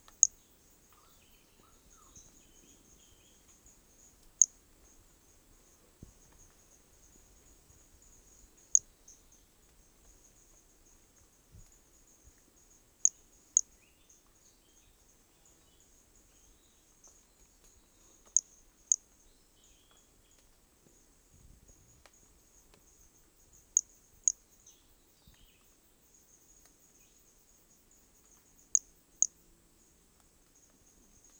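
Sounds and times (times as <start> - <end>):
Hermogenes' pumpkin toadlet chirping: 0.0 - 3.4, 8.6 - 8.9
faint continuous insect buzz: 0.0 - 31.3.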